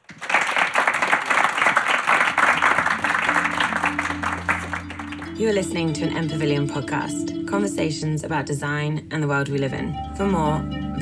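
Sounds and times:
audience round of applause: 0.0s - 5.4s
speech: 5.4s - 11.0s.

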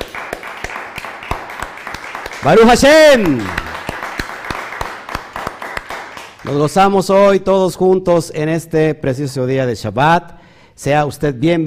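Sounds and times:
audience clapping: 0.0s - 6.9s
speech: 2.4s - 3.6s, 6.5s - 11.6s.

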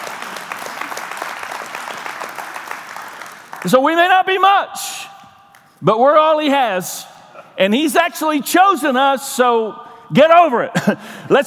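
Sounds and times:
audience clapping hands: 0.0s - 4.3s
speech: 3.6s - 5.1s, 5.8s - 11.4s.

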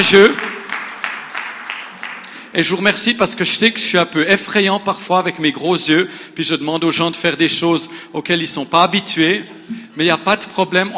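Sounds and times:
speech: 0.0s - 0.4s, 2.6s - 10.9s
audience applause: 0.0s - 2.5s.

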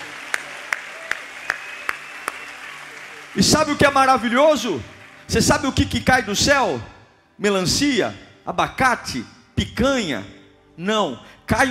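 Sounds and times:
audience applauding: 0.0s - 6.2s
speech: 3.4s - 11.6s.

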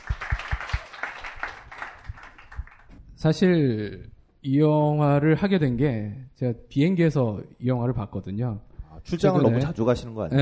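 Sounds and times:
people clapping: 0.0s - 3.0s
speech: 3.2s - 10.4s.

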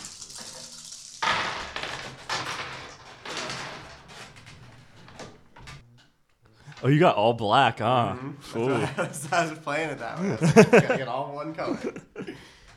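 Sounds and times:
dice being rolled: 0.0s - 4.0s
speech: 6.8s - 12.2s
laughter: 8.1s - 12.7s.

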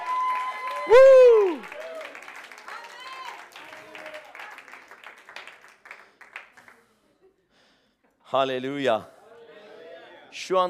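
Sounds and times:
people shouting and cheering: 0.0s - 4.2s
audience applause: 0.0s - 6.9s
speech: 0.9s - 1.2s, 8.3s - 9.2s, 10.4s - 10.6s.

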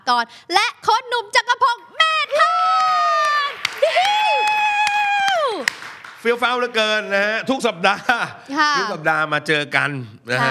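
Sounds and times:
speech: 0.1s - 3.2s, 5.6s - 10.4s
sharp claps: 2.2s - 7.1s
crowd whooping hiw cheer sound effect: 2.3s - 5.8s.

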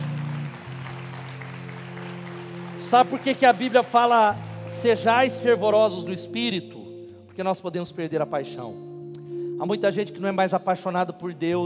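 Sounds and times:
audience applauding: 0.0s - 6.6s
speech: 2.9s - 6.8s, 7.4s - 8.9s, 9.6s - 11.6s.

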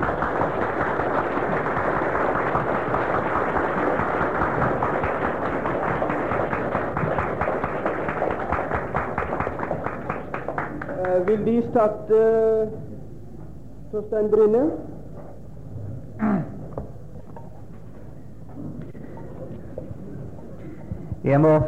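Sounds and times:
audience applause: 0.0s - 11.7s
speech: 11.3s - 12.9s, 13.9s - 14.8s, 21.3s - 21.6s.

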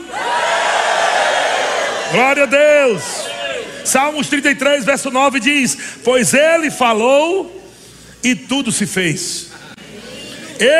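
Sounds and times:
audience shouting for joy: 0.0s - 3.9s
speech: 2.1s - 7.6s, 8.2s - 9.6s, 10.6s - 10.7s.

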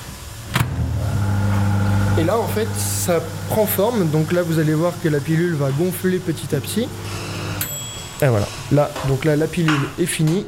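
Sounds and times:
microwave oven running: 0.5s - 7.8s
speech: 2.2s - 7.4s, 8.2s - 10.4s.

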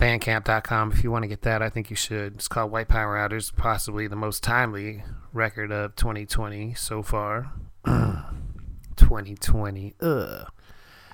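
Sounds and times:
speech: 0.1s - 8.4s, 9.0s - 10.6s
burp into the microphone: 7.9s - 8.3s, 10.0s - 10.6s.

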